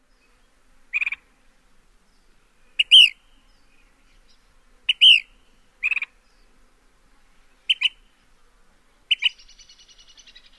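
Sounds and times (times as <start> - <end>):
calls: 2.7 - 3.4, 4.8 - 6.2, 7.7 - 8.1, 9.1 - 10.5.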